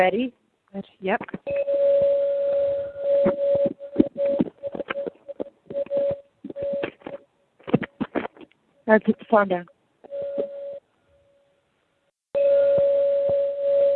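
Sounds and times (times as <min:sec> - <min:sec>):
speech: 0:00.0 - 0:02.0, 0:03.2 - 0:03.4, 0:08.9 - 0:09.8
singing bowl ringing: 0:01.5 - 0:04.0, 0:10.1 - 0:11.4, 0:12.4 - 0:13.9
sharp clicks and knocks: 0:03.2 - 0:08.6.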